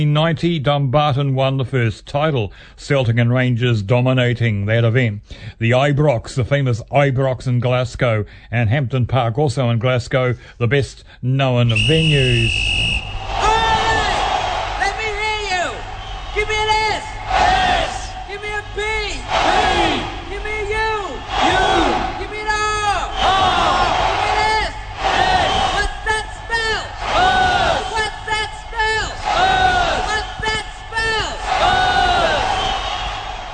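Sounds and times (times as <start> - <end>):
speech: 0.0 - 13.0
soccer crowd cheering: 11.8 - 33.5.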